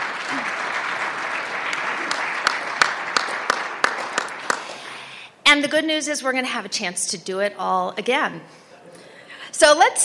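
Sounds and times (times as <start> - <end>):
audience applause: 0.0 - 5.1
speech: 5.6 - 8.7, 9.6 - 10.0.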